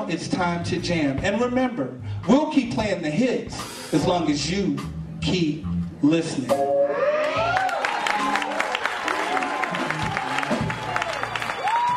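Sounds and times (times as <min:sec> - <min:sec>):
speech: 0:00.1 - 0:07.1
audience applause and cheers: 0:06.8 - 0:11.9.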